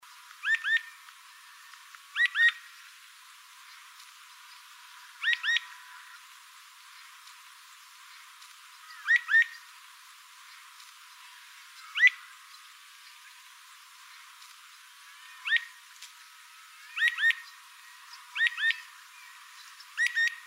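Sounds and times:
Rufous-fronted thornbird song: 0.4 - 1.0, 2.1 - 2.7, 3.7 - 6.1, 8.1 - 9.7, 11.7 - 13.6, 15.3 - 15.8, 16.9 - 20.4.

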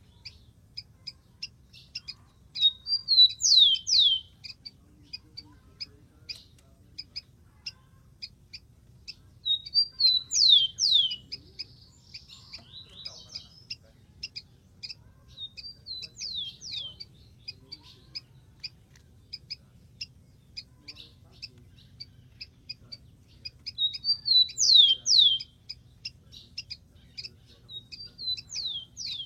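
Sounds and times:
steady low hum: 0.0 - 29.2
rufous-collared sparrow whistled song: 1.7 - 5.2, 9.4 - 18.3, 23.4 - 29.2.

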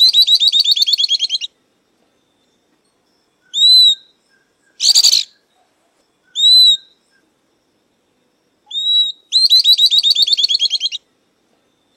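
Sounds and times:
southern beardless-tyrannulet song: 0.0 - 1.5, 3.5 - 5.6, 6.3 - 7.0, 8.7 - 11.0.

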